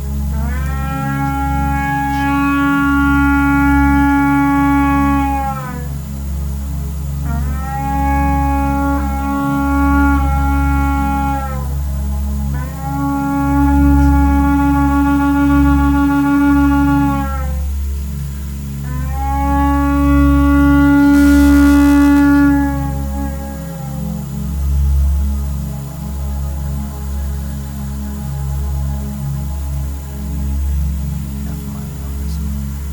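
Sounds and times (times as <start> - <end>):
shofar being blown: 0.1 - 32.4.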